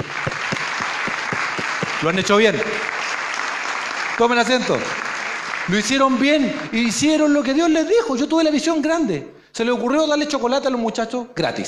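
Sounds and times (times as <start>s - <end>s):
audience applause: 0.0s - 7.2s
speech: 2.0s - 2.7s, 4.2s - 5.0s, 5.7s - 11.6s.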